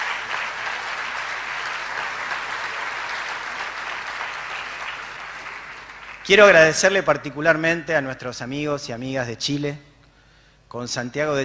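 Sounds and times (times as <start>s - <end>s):
audience applause: 0.0s - 6.8s
speech: 6.3s - 9.9s, 10.7s - 11.4s.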